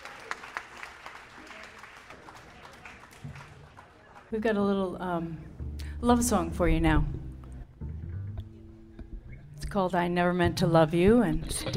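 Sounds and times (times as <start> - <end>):
crowd applause: 0.0 - 4.3
speech: 4.3 - 7.2, 9.8 - 11.7.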